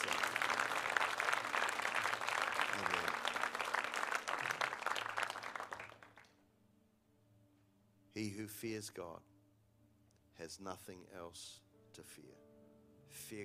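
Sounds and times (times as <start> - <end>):
audience clapping in praise: 0.0 - 6.4
speech: 8.2 - 9.3, 10.4 - 12.5, 13.1 - 13.4.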